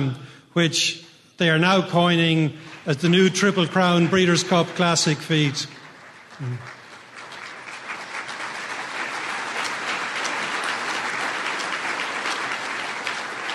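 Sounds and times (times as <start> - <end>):
speech: 0.0 - 5.8, 6.4 - 6.8
audience applause: 2.7 - 13.5.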